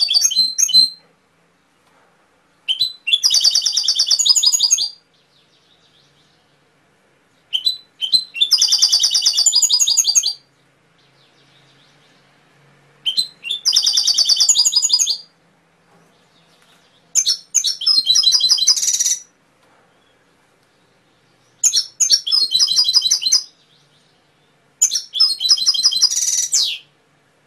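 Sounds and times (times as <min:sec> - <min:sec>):
canary singing trilled phrases: 0:00.0 - 0:01.0, 0:02.6 - 0:06.4, 0:07.5 - 0:12.2, 0:13.0 - 0:15.4, 0:16.3 - 0:19.4, 0:20.8 - 0:27.0.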